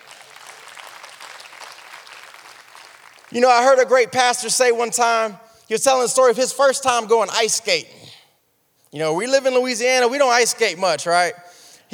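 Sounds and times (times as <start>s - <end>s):
audience clapping hands: 0.0s - 3.6s
speech: 3.3s - 8.0s, 8.9s - 11.9s.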